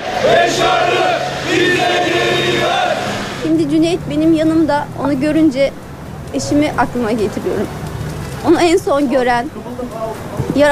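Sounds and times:
protest crowd chanting outside consulate: 0.0s - 3.6s
constant murmur: 0.0s - 10.6s
speech: 0.2s - 2.3s, 3.5s - 7.8s, 8.4s - 10.6s.

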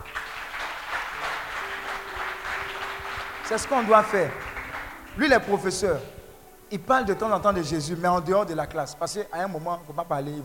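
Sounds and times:
applause in praise of God: 0.0s - 6.2s
speech: 3.5s - 4.5s, 5.2s - 10.4s.

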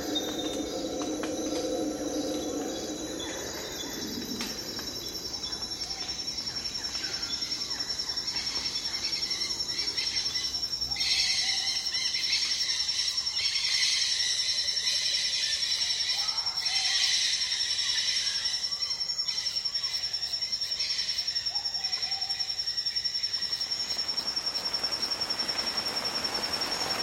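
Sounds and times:
light rain hiss in the Amazon rainforest: 0.0s - 10.4s, 23.4s - 27.0s
high insect whine in the Amazon rainforest: 0.0s - 27.0s.

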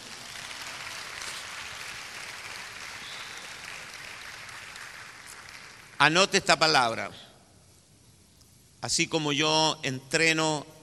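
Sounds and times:
crowd applauding: 0.0s - 6.1s
speech: 6.0s - 7.3s, 8.8s - 10.8s.

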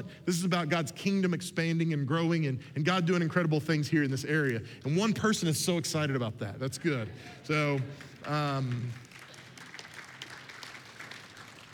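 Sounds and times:
speech: 0.0s - 9.0s
scattered audience clapping at a church gathering: 7.4s - 11.7s.

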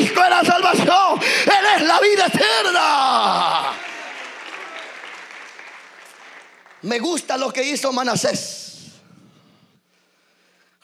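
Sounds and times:
speech: 0.2s - 3.9s, 6.8s - 8.6s
audience applause: 2.5s - 7.0s.

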